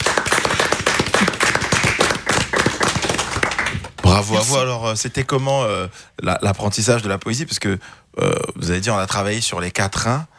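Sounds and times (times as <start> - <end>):
audience applauding: 0.0 - 4.5
speech: 4.1 - 10.3.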